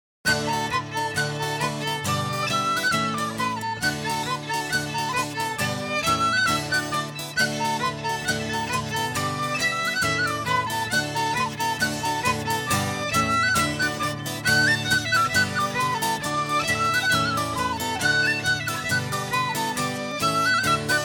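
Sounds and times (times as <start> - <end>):
polka music: 0.3 - 21.0.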